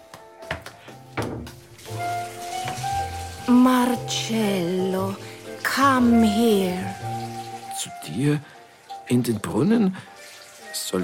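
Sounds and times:
dull knocks and clunks: 0.4 - 1.6
water gushing from a bathtub tap: 1.4 - 11.0
speech: 3.5 - 7.0, 8.1 - 8.5, 9.1 - 10.1.

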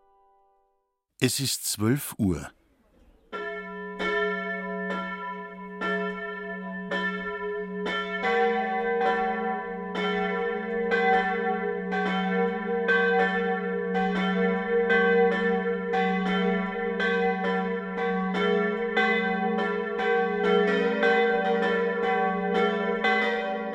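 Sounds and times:
speech: 1.2 - 2.6
midday ringing of church bells of the Catholic parish church Marie Lichtmess in Lindkirchen: 3.4 - 23.7.

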